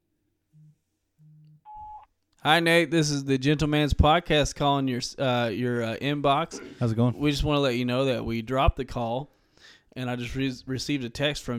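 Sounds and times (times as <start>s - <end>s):
voicemail recording tone: 0.6s - 2.1s
speech: 2.4s - 9.4s, 10.0s - 11.5s.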